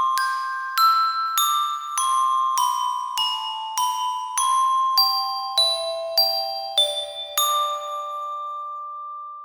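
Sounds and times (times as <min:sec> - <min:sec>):
glockenspiel: 0:00.0 - 0:09.4.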